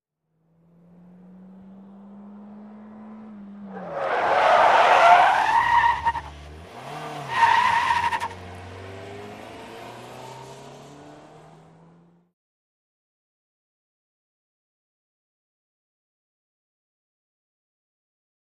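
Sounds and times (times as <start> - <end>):
small compact car 180 skid: 2.7 - 11.5.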